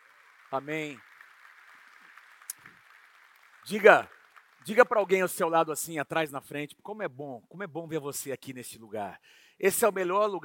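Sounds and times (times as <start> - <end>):
audience applause: 0.0 - 5.5
speech: 0.5 - 1.1, 3.6 - 10.4.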